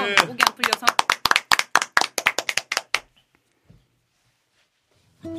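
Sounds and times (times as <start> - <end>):
audience clapping: 0.0 - 3.2.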